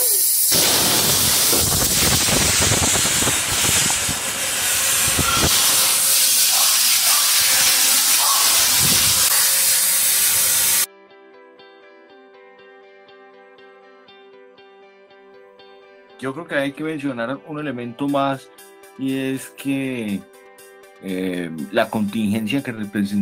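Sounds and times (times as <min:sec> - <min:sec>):
cooking pot hissing steam on stove: 0:00.0 - 0:10.9
speech: 0:16.2 - 0:20.4, 0:21.0 - 0:23.1.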